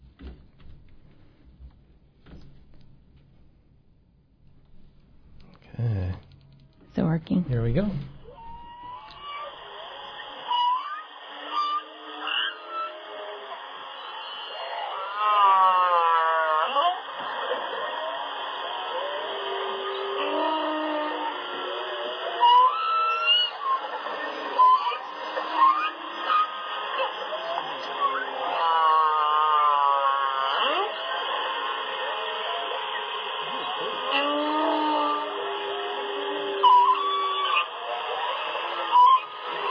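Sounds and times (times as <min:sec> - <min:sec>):
speech: 0:07.2 - 0:08.2
male humpback whale song: 0:08.0 - 0:39.6.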